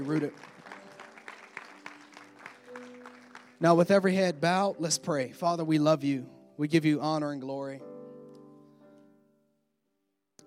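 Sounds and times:
speech: 0:00.0 - 0:00.6, 0:03.6 - 0:08.0
audience clapping hands: 0:00.0 - 0:04.1.

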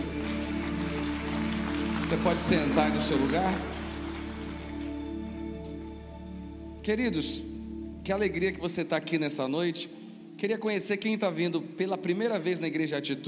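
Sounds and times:
audience applause: 0:00.0 - 0:05.6
speech: 0:02.1 - 0:03.7, 0:06.8 - 0:13.2.

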